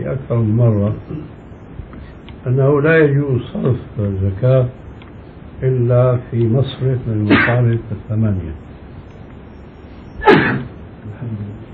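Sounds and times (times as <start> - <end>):
speech: 0.1 - 1.2, 2.4 - 4.8, 5.6 - 8.6, 10.2 - 11.5
man sneezing during a religious lesson: 10.2 - 10.7.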